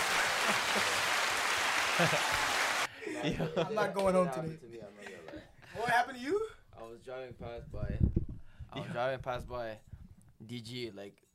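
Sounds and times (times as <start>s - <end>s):
round of applause: 0.0s - 2.9s
laughter: 0.0s - 4.2s
speech: 0.5s - 1.0s, 2.0s - 2.5s, 3.2s - 8.1s, 8.7s - 11.2s.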